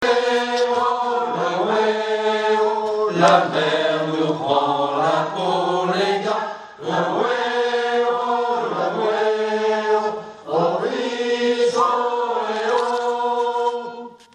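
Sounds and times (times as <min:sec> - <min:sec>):
everyone's voices singing a refrain: 0:00.0 - 0:14.2.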